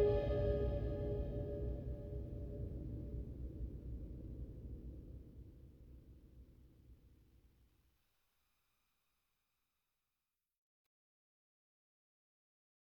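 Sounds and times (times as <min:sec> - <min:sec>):
fungus world ambience: 0:00.0 - 0:03.7.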